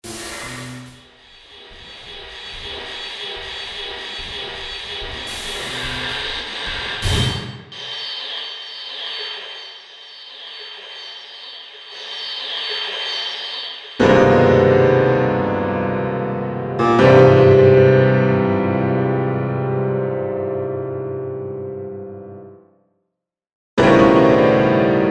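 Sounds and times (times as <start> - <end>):
piano: 14.0 - 22.6, 23.8 - 25.0.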